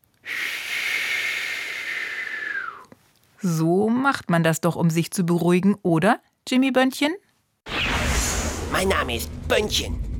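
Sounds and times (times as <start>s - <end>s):
long deep calming breath: 0.2s - 2.9s
faint whistling tone: 0.3s - 2.9s
speech: 3.4s - 7.2s, 8.8s - 10.0s.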